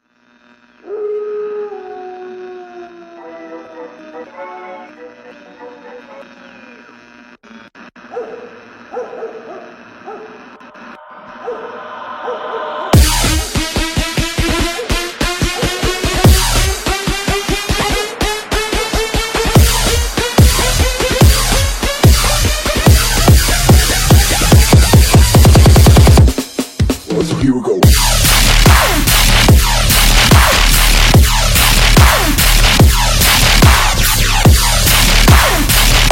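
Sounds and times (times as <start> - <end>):
dubstep remix: 10.6 - 36.0.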